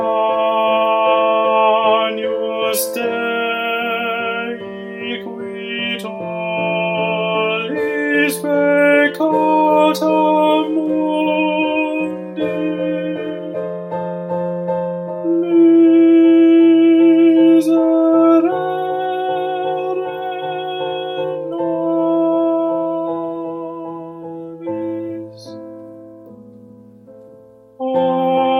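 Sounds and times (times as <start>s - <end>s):
tenor singing: 0.0s - 25.6s, 27.8s - 28.5s.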